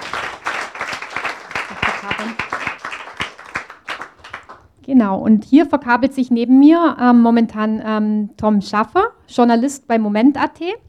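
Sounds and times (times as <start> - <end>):
audience applause: 0.0 - 4.6
speech: 2.2 - 2.6, 4.9 - 10.8.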